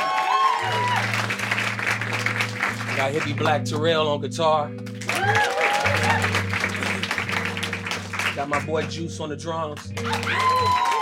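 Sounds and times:
audience applause: 0.0s - 3.6s, 5.0s - 8.8s, 10.0s - 11.0s
speech: 3.0s - 5.4s, 8.4s - 10.9s.

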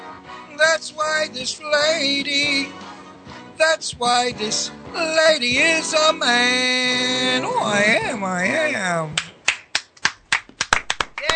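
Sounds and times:
speech: 0.6s - 2.9s, 3.6s - 9.2s
short voiced exclamation: 7.0s - 9.1s
hands clapping: 9.1s - 11.3s.

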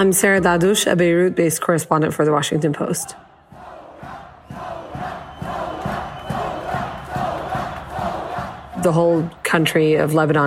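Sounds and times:
speech: 0.0s - 3.3s, 8.8s - 10.4s
protest crowd chanting: 2.8s - 9.7s.

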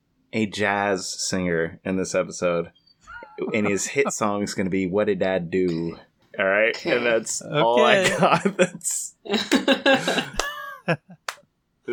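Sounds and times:
speech: 0.3s - 11.2s
laughter: 3.1s - 4.9s, 7.4s - 11.3s
clapping: 10.4s - 10.6s, 11.2s - 11.4s.

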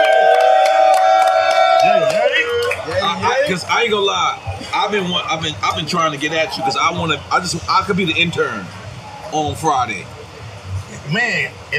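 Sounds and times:
scattered claps: 0.0s - 3.2s
high whooping: 0.0s - 7.4s
crowd cheering: 0.0s - 9.2s
speech: 3.5s - 10.2s, 11.1s - 11.7s.

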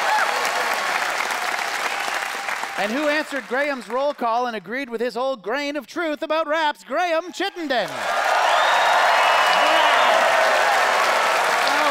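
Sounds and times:
audience applause voting for a contestant: 0.0s - 4.3s, 7.6s - 11.8s
speech: 2.8s - 8.2s.

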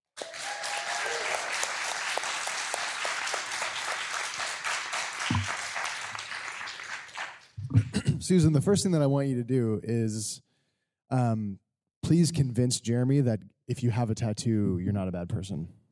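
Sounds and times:
audience applause: 0.2s - 7.6s
speech: 8.3s - 10.5s, 11.1s - 15.8s.

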